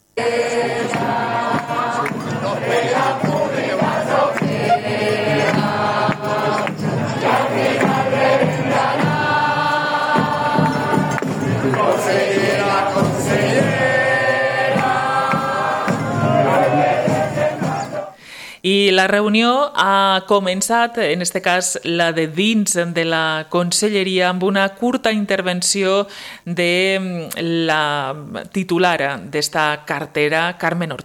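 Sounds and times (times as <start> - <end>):
protesters chanting slogans outside government building: 0.2 - 18.2
speech: 18.9 - 31.0.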